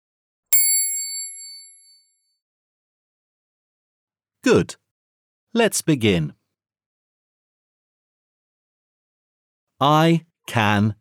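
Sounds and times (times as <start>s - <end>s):
page-turn bell ding: 0.6s - 2.1s
speech: 4.5s - 4.8s, 5.5s - 6.4s, 9.8s - 10.9s.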